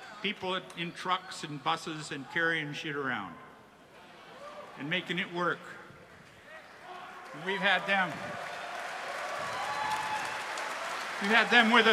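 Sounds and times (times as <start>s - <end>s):
concert crowd noise: 0.0s - 11.9s
speech: 0.2s - 3.5s, 4.8s - 5.8s, 7.4s - 8.5s, 11.2s - 11.9s
concert crowd clapping for the road crew: 6.7s - 11.9s.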